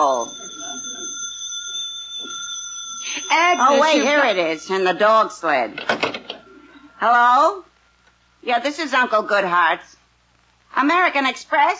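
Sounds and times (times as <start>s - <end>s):
speech: 0.0s - 0.9s, 3.3s - 6.3s, 7.0s - 7.7s, 8.4s - 10.0s, 10.7s - 11.7s
telephone ringing: 0.0s - 6.2s.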